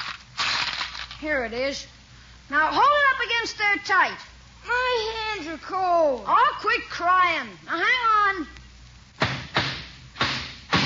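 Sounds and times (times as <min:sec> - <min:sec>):
speech: 0:01.2 - 0:08.6
hammer hitting a nail: 0:09.2 - 0:10.8.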